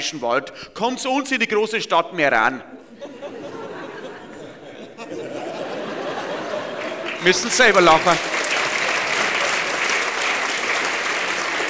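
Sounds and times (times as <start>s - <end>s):
speech: 0.0s - 3.1s, 7.2s - 8.3s
laughter: 2.8s - 11.6s
audience applause: 5.4s - 11.6s.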